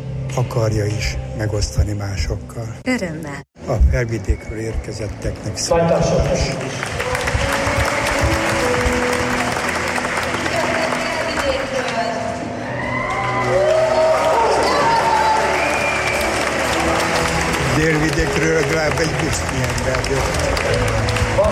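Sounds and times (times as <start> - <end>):
speech: 0.4 - 7.0, 18.1 - 21.1
audience applause: 6.0 - 21.5
whistles and cheers: 7.0 - 9.2, 12.5 - 17.4.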